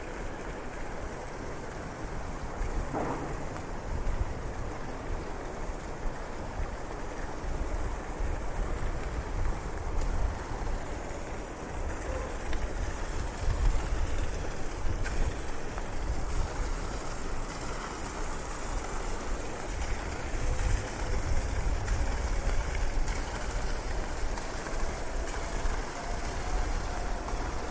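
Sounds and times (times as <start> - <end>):
low rumble of passing traffic: 0.0 - 27.6
rain falling on city streets: 0.0 - 27.6
person walking through city streets: 2.9 - 3.8.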